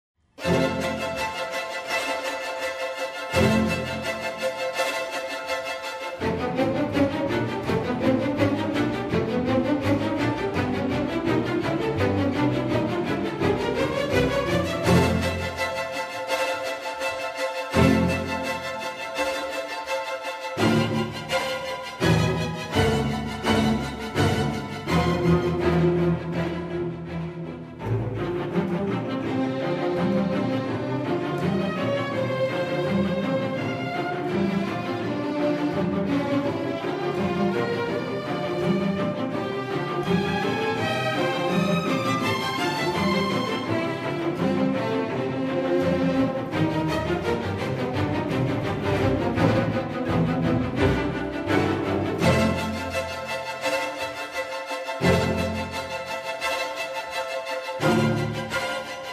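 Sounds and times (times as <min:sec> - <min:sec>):
chamber orchestra playing a concerto: 0:00.4 - 0:59.1.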